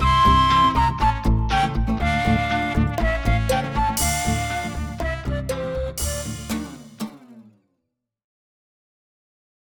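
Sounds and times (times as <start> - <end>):
flute: 0.0 - 7.0.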